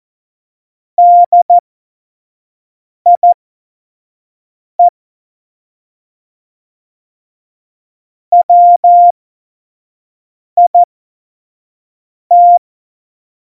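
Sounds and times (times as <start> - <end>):
CW Morse code at tempo 70: 1.0 - 1.6, 3.1 - 3.4, 8.3 - 9.1, 10.6 - 10.9, 12.3 - 12.6.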